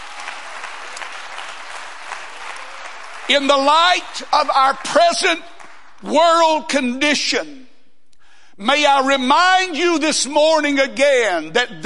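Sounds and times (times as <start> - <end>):
audience clapping hands: 0.0 - 6.1
speech: 3.3 - 7.7, 8.6 - 11.8.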